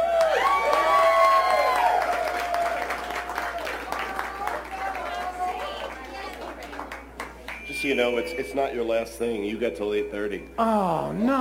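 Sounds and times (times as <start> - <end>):
audience clapping and cheering: 0.0 - 8.1
speech: 7.8 - 11.3.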